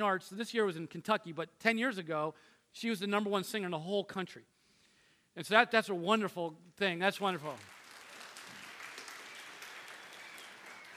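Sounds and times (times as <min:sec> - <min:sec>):
speech: 0:00.0 - 0:04.6, 0:05.4 - 0:07.8
golf clap: 0:07.4 - 0:10.9.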